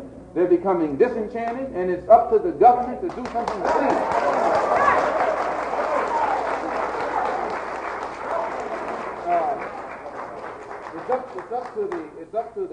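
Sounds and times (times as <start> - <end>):
speech: 0.4 - 4.3, 11.5 - 12.7
audience applause: 3.2 - 12.2.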